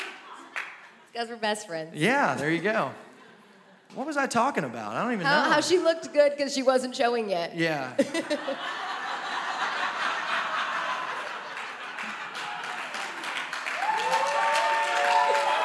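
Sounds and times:
audience applause: 0:00.0 - 0:00.8, 0:09.2 - 0:15.6
speech: 0:01.2 - 0:03.1, 0:03.9 - 0:08.9
laughter: 0:05.2 - 0:05.8, 0:08.0 - 0:13.2.

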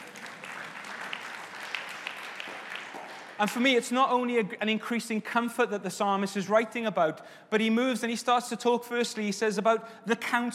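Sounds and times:
audience applause: 0:00.0 - 0:03.9
speech: 0:03.4 - 0:10.5.

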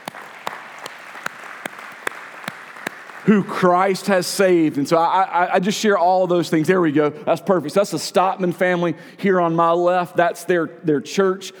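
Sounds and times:
audience applause: 0:00.0 - 0:04.0
speech: 0:03.2 - 0:11.5.

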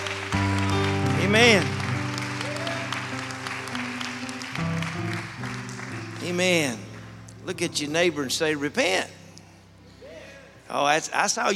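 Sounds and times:
audience clapping hands: 0:00.0 - 0:07.5
sustained musical tones: 0:00.0 - 0:10.0
speech: 0:01.3 - 0:01.8, 0:06.4 - 0:06.8, 0:07.5 - 0:09.2, 0:10.7 - 0:11.5.

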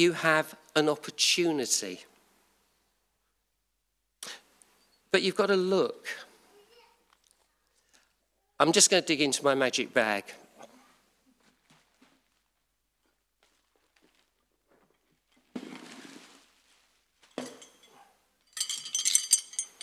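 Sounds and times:
speech: 0:00.0 - 0:02.1, 0:05.1 - 0:06.3, 0:08.6 - 0:10.4
small bunch of keys jingling: 0:17.4 - 0:19.8.

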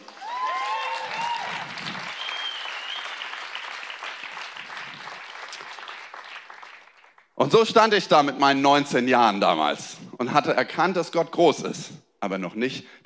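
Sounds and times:
audience applause: 0:00.0 - 0:07.2
speech: 0:07.5 - 0:13.0.

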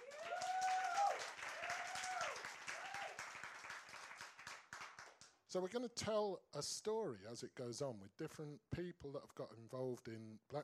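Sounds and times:
audience applause: 0:00.0 - 0:05.3
speech: 0:05.5 - 0:10.6.

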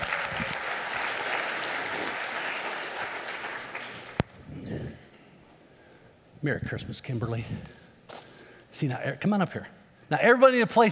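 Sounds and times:
audience applause: 0:00.0 - 0:04.2
speech: 0:06.4 - 0:07.8, 0:08.8 - 0:10.8.

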